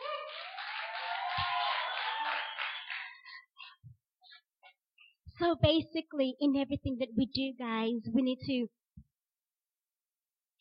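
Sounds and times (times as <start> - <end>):
audience clapping hands: 0.0 - 3.6
speech: 5.4 - 8.8.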